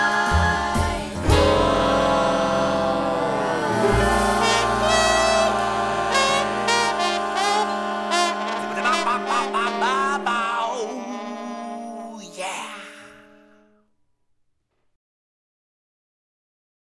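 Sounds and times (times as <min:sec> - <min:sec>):
string bass: 0:00.0 - 0:08.8
laughter: 0:01.4 - 0:12.4.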